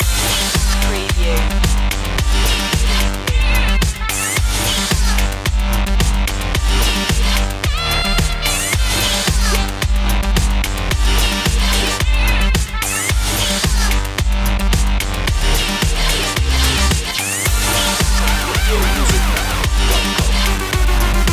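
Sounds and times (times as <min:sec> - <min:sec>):
French punk loop: 0:00.0 - 0:21.3.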